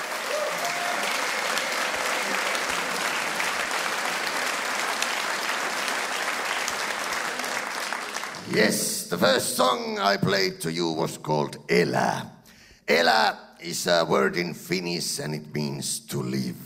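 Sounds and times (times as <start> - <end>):
audience applause: 0.0 - 9.0
speech: 8.5 - 12.3, 12.9 - 16.6.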